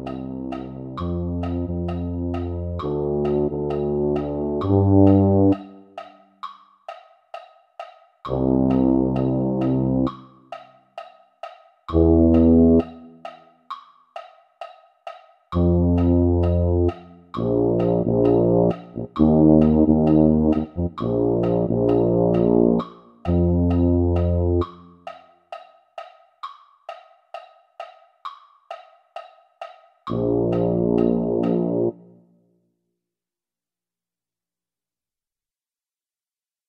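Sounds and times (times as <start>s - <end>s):
tuba: 0.0s - 5.8s, 8.3s - 10.2s, 11.9s - 13.2s, 15.6s - 25.0s, 30.1s - 32.2s.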